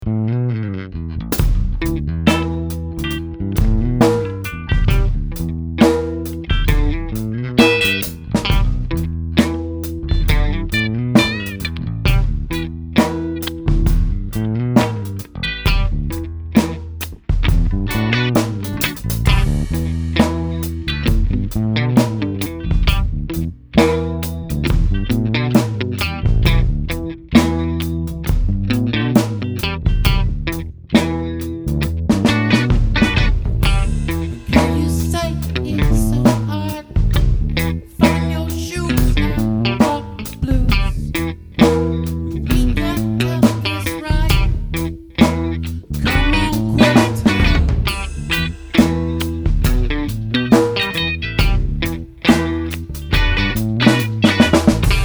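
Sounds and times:
blues music: 0.0s - 55.0s.

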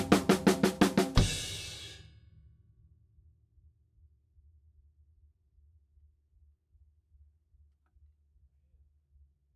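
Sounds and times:
drums: 0.0s - 2.2s.

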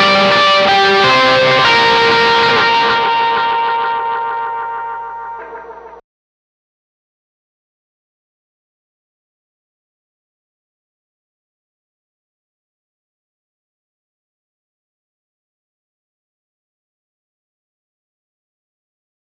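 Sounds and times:
main guitar playing: 0.0s - 6.0s.

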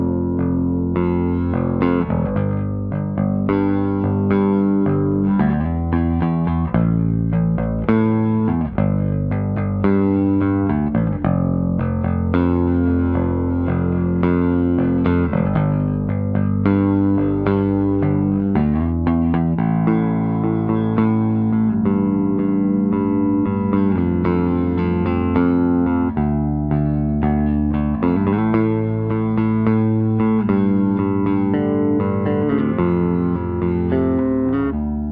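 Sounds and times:
mono DI line bass guitar: 0.0s - 35.0s.

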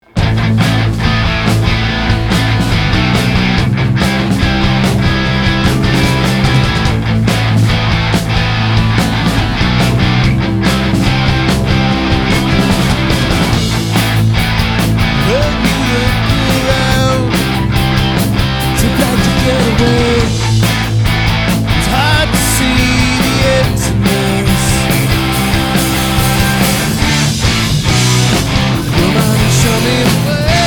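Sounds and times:
guitar recorded with a microphone: 0.0s - 30.6s.

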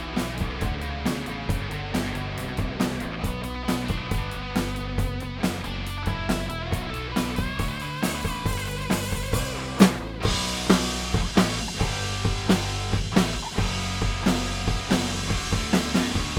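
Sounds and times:
drums: 0.0s - 16.3s.

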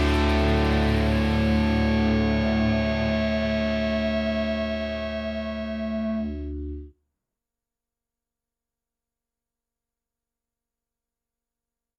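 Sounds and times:
instrumental mix: 0.0s - 6.9s.

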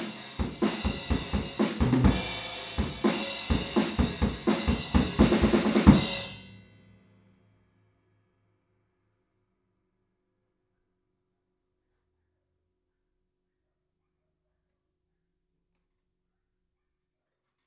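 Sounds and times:
drums recorded with PZM omni microphone: 0.0s - 6.9s.

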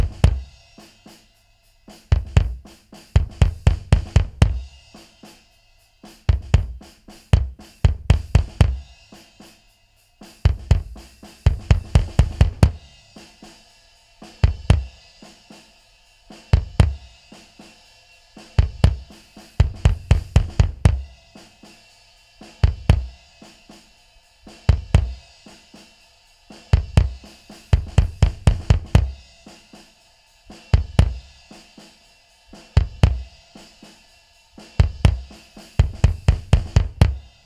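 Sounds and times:
kick drum: 0.0s - 0.9s, 1.9s - 5.0s, 6.2s - 9.0s, 10.4s - 13.1s, 14.4s - 15.1s, 16.5s - 17.4s, 18.6s - 21.6s, 22.6s - 23.4s, 24.4s - 25.5s, 26.6s - 29.5s, 30.5s - 31.6s, 32.5s - 33.7s, 34.6s - 37.4s
drums: 0.0s - 37.4s.

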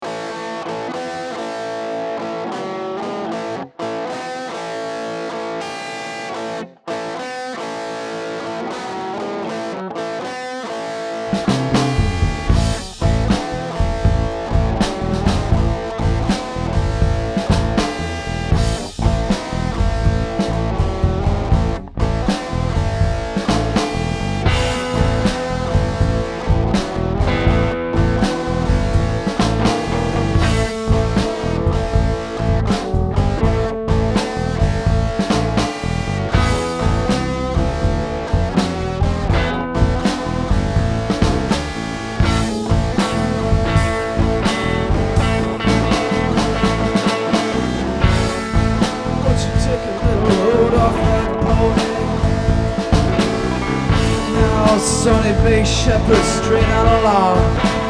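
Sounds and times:
blues music: 0.0s - 57.8s.

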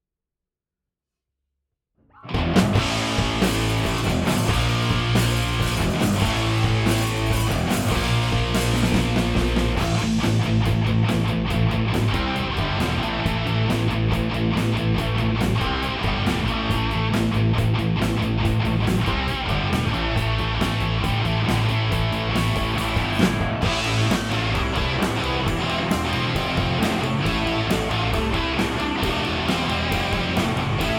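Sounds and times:
guitars: 2.1s - 30.9s.

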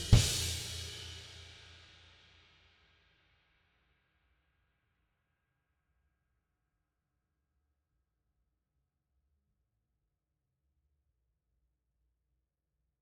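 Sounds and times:
drums: 0.0s - 2.5s.

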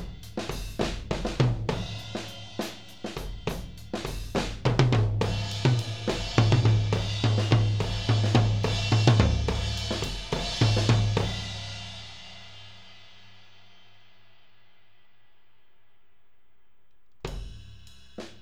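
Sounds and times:
tom drums: 0.0s - 12.8s, 17.2s - 18.4s.

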